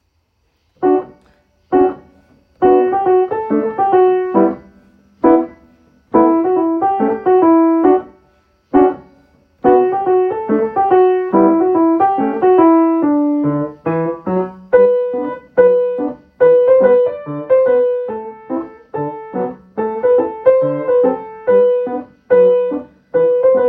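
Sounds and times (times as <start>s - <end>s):
piano: 0.8s - 23.6s.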